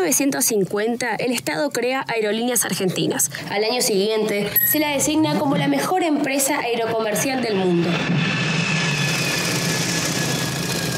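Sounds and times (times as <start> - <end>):
speech: 0.0 - 8.4
jet airplane engine: 7.8 - 10.9.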